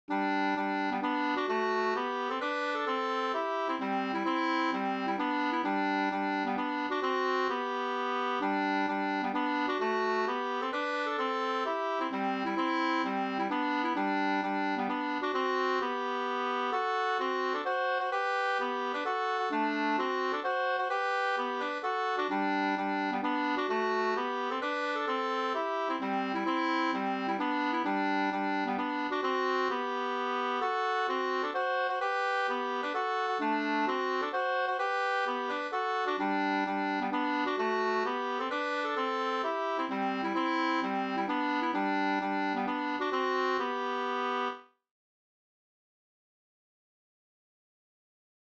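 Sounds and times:
two-part polska: 0:00.1 - 0:44.6.

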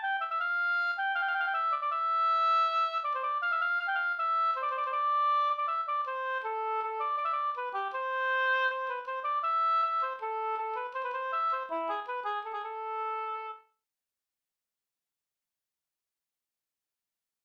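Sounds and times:
folk walking tune: 0:00.0 - 0:13.6.

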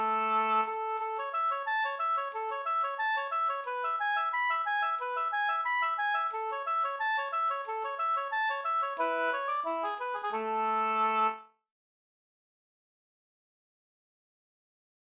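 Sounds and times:
folk walking tune: 0:00.0 - 0:11.4.

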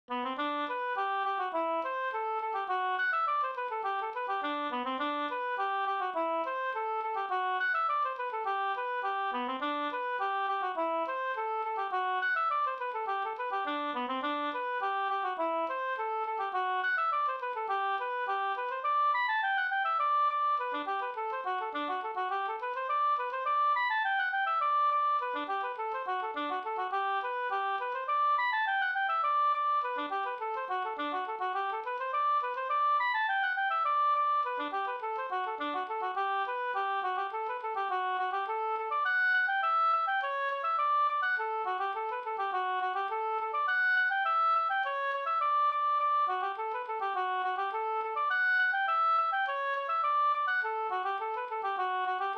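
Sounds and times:
folk walking tune: 0:00.1 - 0:52.3.

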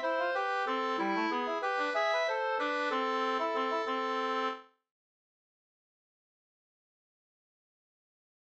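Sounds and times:
waltz in A minor: 0:00.0 - 0:04.6.

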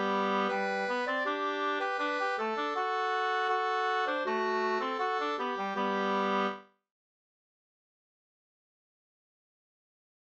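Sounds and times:
folk dance music: 0:00.0 - 0:06.6.

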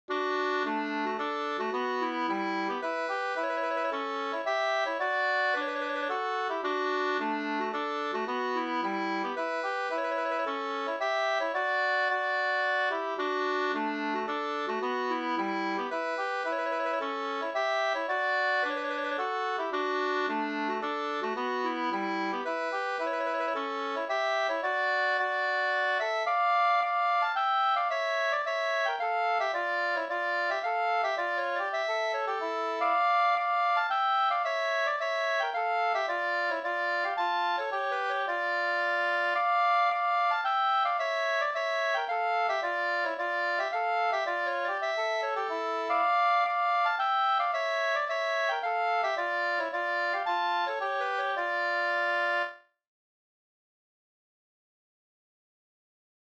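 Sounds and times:
polska folk tune in major and minor: 0:00.0 - 0:52.8.

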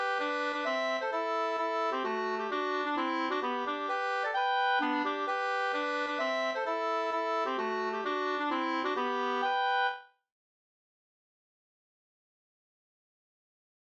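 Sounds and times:
two-part polska folk dance tune: 0:00.0 - 0:10.0.

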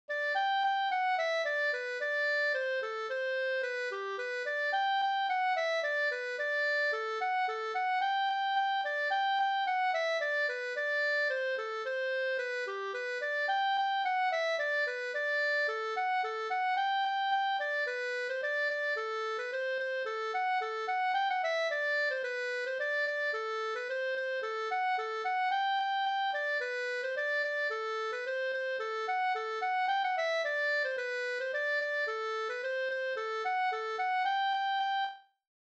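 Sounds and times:
polka music: 0:00.1 - 0:35.3.

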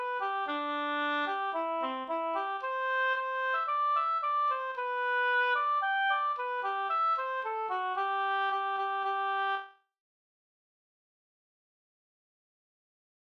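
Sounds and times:
ganglat in G major: 0:00.0 - 0:09.7.

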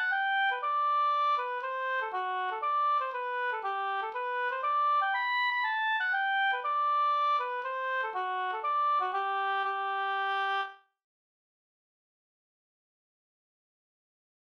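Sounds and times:
polska folk dance tune: 0:00.0 - 0:10.7.

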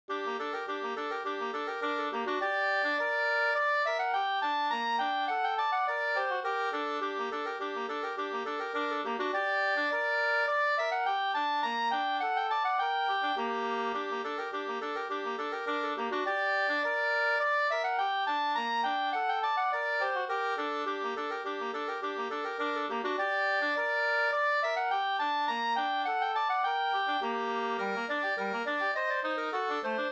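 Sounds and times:
two-part slangpolska: 0:00.1 - 0:30.1.

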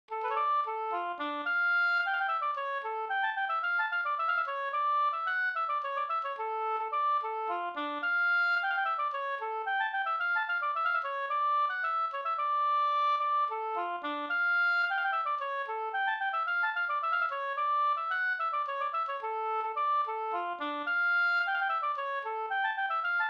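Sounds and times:
polska dance tune: 0:00.1 - 0:23.2.

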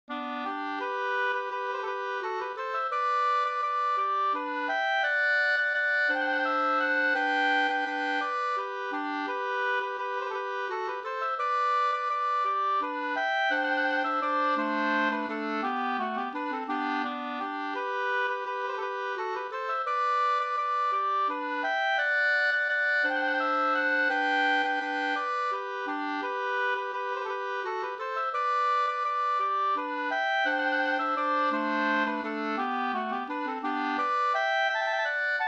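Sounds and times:
waltz in two parts: 0:00.1 - 0:35.4.

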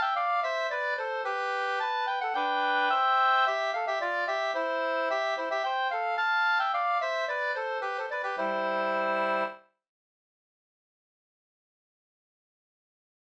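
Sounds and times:
two-part polska dance tune: 0:00.0 - 0:09.6.

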